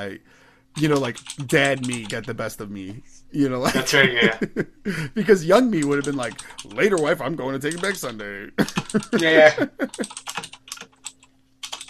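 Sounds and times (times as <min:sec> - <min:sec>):
speech: 0:00.0 - 0:10.6
typing on a computer keyboard: 0:00.8 - 0:02.2, 0:05.8 - 0:09.3, 0:09.9 - 0:11.8
laughter: 0:03.6 - 0:05.4, 0:08.6 - 0:10.1.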